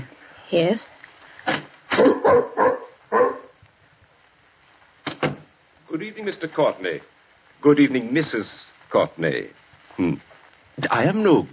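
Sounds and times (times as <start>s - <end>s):
speech: 0.5s - 2.8s, 6.2s - 11.5s
dog barking: 1.9s - 3.6s.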